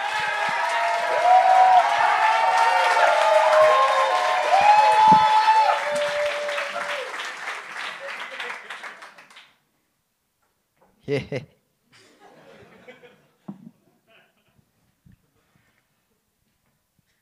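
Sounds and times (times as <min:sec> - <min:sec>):
audience applause: 0:00.0 - 0:09.5
speech: 0:11.1 - 0:11.6
laughter: 0:11.1 - 0:14.6.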